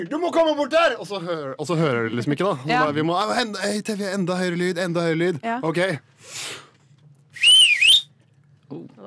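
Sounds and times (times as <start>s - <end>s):
speech: 0.0s - 6.6s, 8.7s - 9.0s
loud shrill human whistle without fingers: 7.4s - 8.1s.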